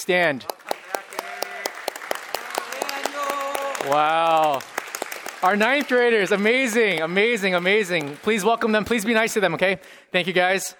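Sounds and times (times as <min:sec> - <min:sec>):
speech: 0:00.0 - 0:00.6, 0:03.8 - 0:04.7, 0:05.4 - 0:10.7
audience clapping to welcome students: 0:00.1 - 0:09.6
voices calling and cheering: 0:00.7 - 0:04.6.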